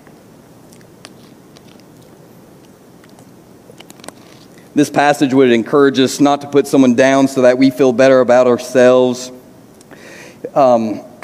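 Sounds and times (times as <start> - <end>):
person sipping water: 0.6 - 4.8
speech: 4.8 - 9.4, 10.5 - 11.2.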